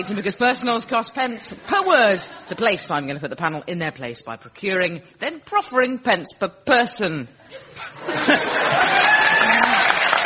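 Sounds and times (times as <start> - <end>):
speech: 0.0 - 10.0
laughter: 7.4 - 9.7
crowd applauding: 8.2 - 10.2.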